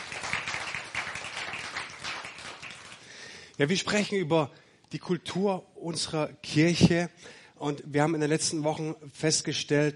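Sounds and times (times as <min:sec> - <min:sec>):
audience applause: 0:00.0 - 0:03.2
speech: 0:03.6 - 0:09.9.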